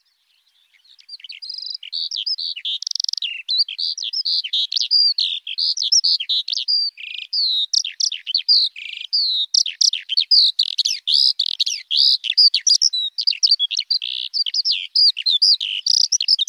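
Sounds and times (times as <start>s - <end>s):
Eurasian skylark singing: 0.0s - 16.4s.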